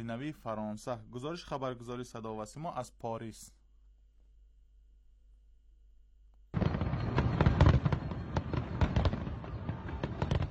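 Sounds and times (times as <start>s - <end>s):
speech: 0.0s - 3.6s
fireworks exploding on New Year's Eve: 6.5s - 10.4s.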